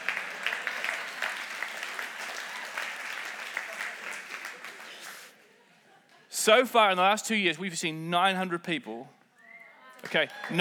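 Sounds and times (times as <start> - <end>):
people cheering: 0.0 - 5.3, 9.4 - 10.5
church audience applause: 0.0 - 5.4, 10.0 - 10.5
speech: 6.4 - 9.2, 10.0 - 10.5.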